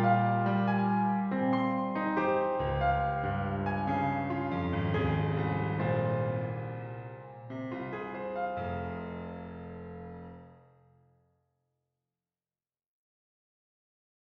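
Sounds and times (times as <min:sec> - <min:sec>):
prelude in F minor: 0:00.0 - 0:10.6.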